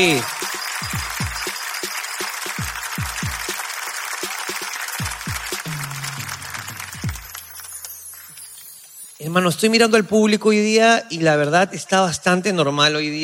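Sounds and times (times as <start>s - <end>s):
speech: 0.0s - 0.4s, 9.2s - 13.2s
crowd applause: 0.0s - 8.1s.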